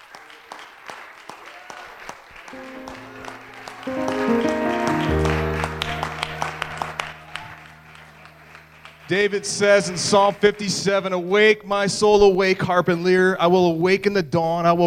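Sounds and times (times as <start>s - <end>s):
audience clapping hands in praise: 0.0s - 11.3s
speech: 2.5s - 3.1s, 9.1s - 14.8s.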